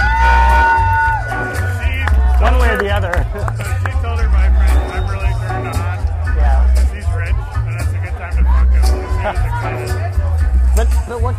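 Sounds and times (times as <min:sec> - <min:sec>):
high-pitched whoop or whistle: 0:00.0 - 0:01.7
crowd roar: 0:00.0 - 0:10.4.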